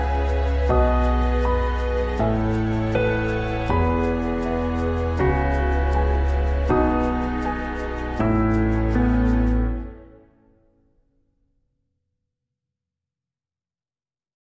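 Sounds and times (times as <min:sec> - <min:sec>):
reduced piano arrangement: 0:00.0 - 0:10.6.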